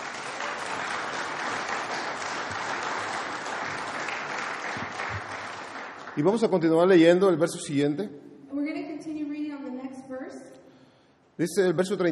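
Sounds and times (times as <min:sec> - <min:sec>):
audience applauding: 0:00.0 - 0:07.0
speech: 0:06.2 - 0:08.2, 0:11.4 - 0:12.1.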